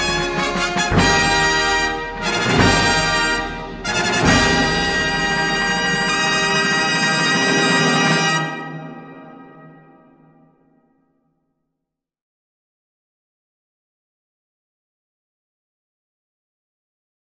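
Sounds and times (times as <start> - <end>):
national anthem music: 0.0 - 10.5.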